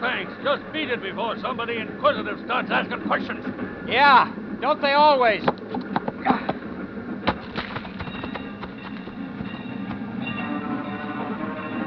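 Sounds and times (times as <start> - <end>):
train rolling by slowly: 0.0 - 11.8
speech: 0.4 - 6.6
crossing bell: 8.0 - 11.8.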